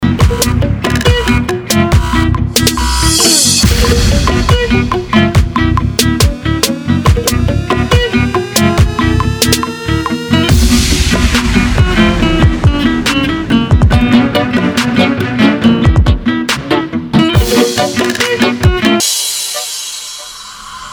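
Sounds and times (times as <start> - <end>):
flamenco music: 0.0 - 19.2.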